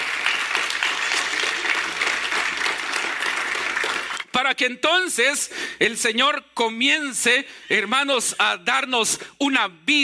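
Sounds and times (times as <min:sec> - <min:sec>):
audience clapping: 0:00.0 - 0:04.3
speech: 0:04.4 - 0:10.0.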